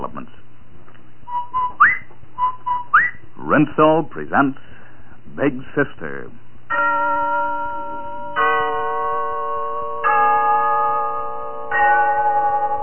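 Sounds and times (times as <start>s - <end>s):
speech: 3.5s - 4.7s, 5.4s - 6.4s
town hall clock bell chiming: 6.7s - 12.8s.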